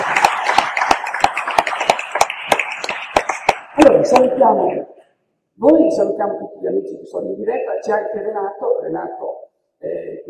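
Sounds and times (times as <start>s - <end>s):
audience applause: 0.0s - 3.8s
speech: 3.8s - 5.0s, 5.6s - 10.2s.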